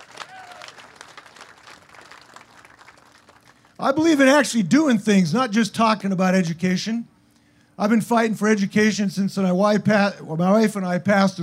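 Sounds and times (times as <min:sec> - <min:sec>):
audience applause for educators: 0:00.0 - 0:03.7
speech: 0:03.8 - 0:07.1, 0:07.8 - 0:11.4.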